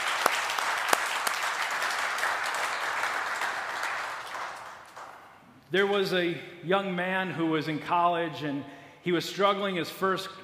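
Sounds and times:
church congregation applauding in the sanctuary to welcome guests: 0.0 - 5.4
speech: 5.7 - 10.4.

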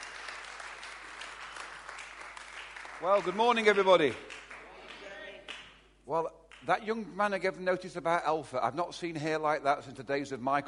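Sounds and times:
round of applause: 0.0 - 5.8
speech: 3.0 - 4.4, 6.1 - 10.6.

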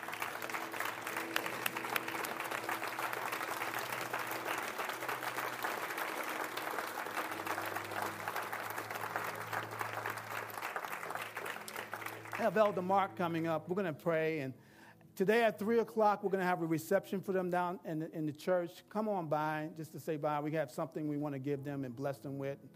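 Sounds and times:
standing ovation applause from audience: 0.0 - 13.2
speech: 12.4 - 14.6, 15.2 - 22.7.

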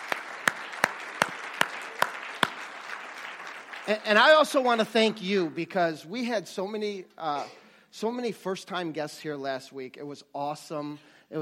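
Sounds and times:
sharp regular claps: 0.0 - 4.8
audience applauding: 0.0 - 5.2
speech: 3.9 - 11.4.

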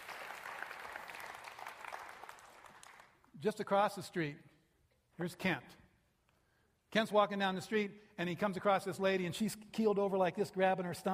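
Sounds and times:
audience clapping: 0.0 - 3.4
speech: 3.4 - 4.5, 5.2 - 5.8, 6.9 - 11.1.

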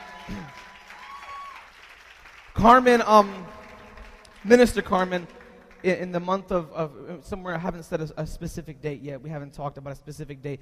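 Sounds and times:
voice cheering: 0.0 - 1.7
audience clapping: 0.0 - 6.4
speech: 0.3 - 0.8, 2.6 - 3.6, 4.4 - 10.5.

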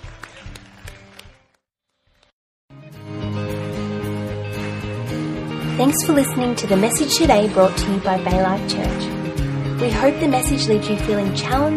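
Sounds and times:
audience applause: 0.0 - 1.5
loud sustained music: 0.0 - 11.7
speech: 5.8 - 9.1, 9.8 - 11.7.

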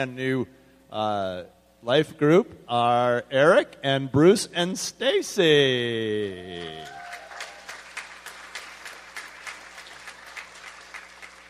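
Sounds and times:
speech: 0.0 - 7.0
audience clapping: 6.5 - 11.4.

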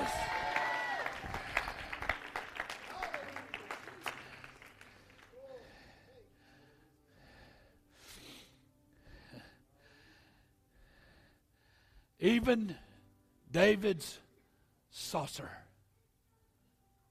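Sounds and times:
audience shouting: 0.0 - 1.3
audience clapping: 0.0 - 5.6
speech: 12.2 - 12.9, 13.5 - 14.2, 14.9 - 15.6.

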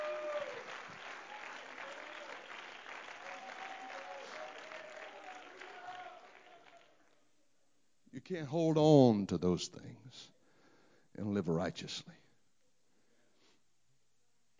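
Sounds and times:
audience clapping hands: 0.0 - 7.2
speech: 8.2 - 10.4, 11.2 - 12.2.

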